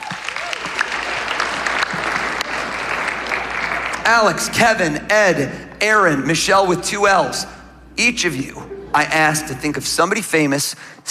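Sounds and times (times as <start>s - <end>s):
audience applause: 0.0s - 4.4s
speech: 4.1s - 11.0s.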